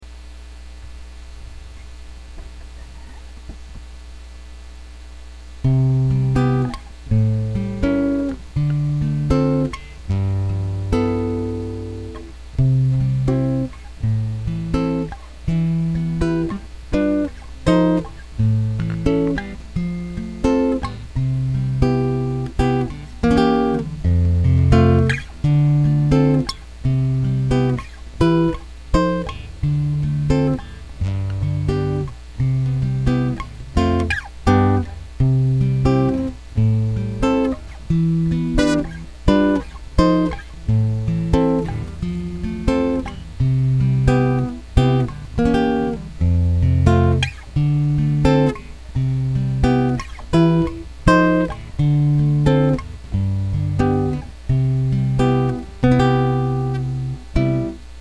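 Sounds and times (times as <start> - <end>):
chords: 5.6 - 57.9.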